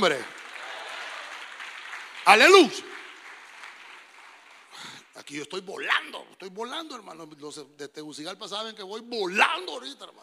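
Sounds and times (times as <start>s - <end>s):
speech: 0.0s - 0.4s, 2.3s - 2.9s, 5.2s - 10.2s
audience clapping: 0.0s - 5.7s
single voice shouting praise: 2.3s - 2.9s.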